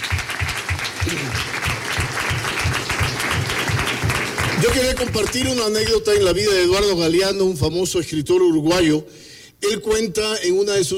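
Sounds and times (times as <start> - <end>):
audience applause: 0.0 - 6.6
speech: 1.0 - 1.5, 4.8 - 10.9.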